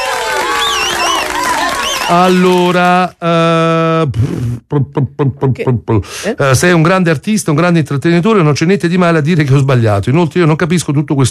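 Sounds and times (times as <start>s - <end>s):
applause: 0.0s - 2.8s
speech: 2.1s - 11.2s.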